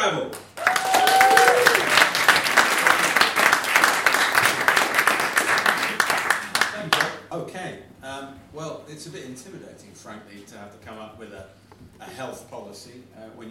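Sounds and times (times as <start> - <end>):
audience applause welcoming a guest on stage at a panel event: 0.4 - 7.1
speech: 8.9 - 13.4.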